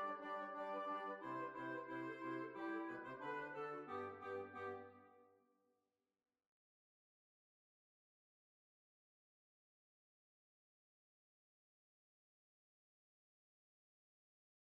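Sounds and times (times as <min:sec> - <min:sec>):
hornpipe tune: 0:00.0 - 0:05.2.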